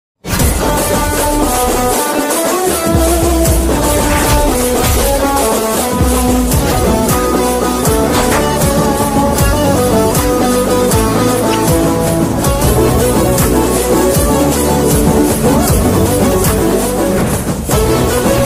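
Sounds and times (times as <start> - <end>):
ringtone music: 0.6 - 18.4.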